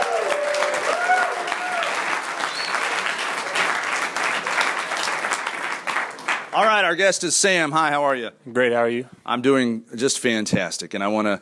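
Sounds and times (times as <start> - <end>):
live audience applause: 0.0 - 6.8
speech: 6.6 - 11.4.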